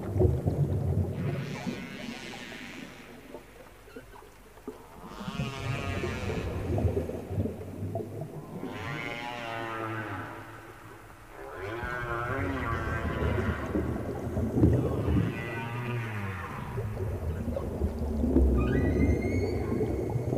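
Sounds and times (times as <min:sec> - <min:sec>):
underwater whale calls: 0:00.9 - 0:20.3
high dolphin-like chirps: 0:18.6 - 0:20.2.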